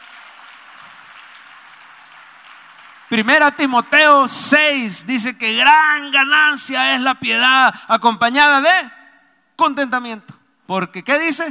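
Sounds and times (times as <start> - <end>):
audience applauding: 0.0 - 4.6
speech: 3.1 - 9.0, 9.6 - 11.5.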